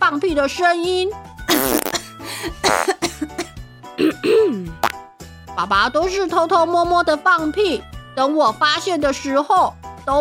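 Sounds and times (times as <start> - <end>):
speech: 0.1 - 3.4, 5.6 - 10.1
rough coughing: 1.5 - 4.9.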